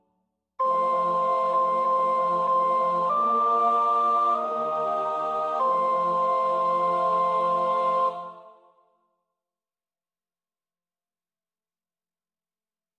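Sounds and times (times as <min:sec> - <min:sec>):
soprano singing a Kyrie: 0:00.6 - 0:08.6.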